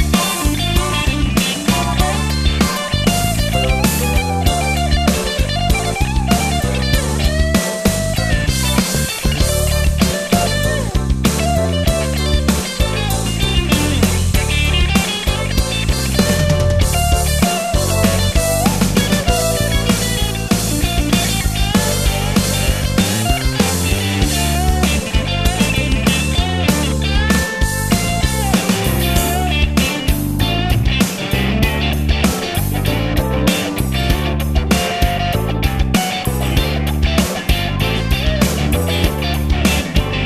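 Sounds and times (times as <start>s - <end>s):
blues-rock Stratocaster roadhouse electric guitar: 0.0s - 40.2s.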